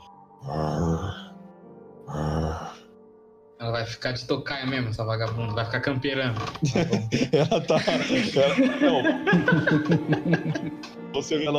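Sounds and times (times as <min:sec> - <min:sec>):
person imitating a dragon's loud heavy breathing: 0:00.4 - 0:01.3, 0:02.1 - 0:02.9
speech: 0:03.6 - 0:11.5
laughter: 0:06.5 - 0:11.0.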